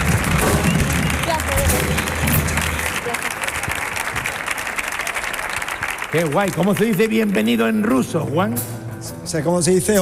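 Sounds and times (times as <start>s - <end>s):
crowd voices: 0.0s - 7.6s
audience applause for a guest coming onto a stage: 0.0s - 8.1s
speech: 6.1s - 10.0s.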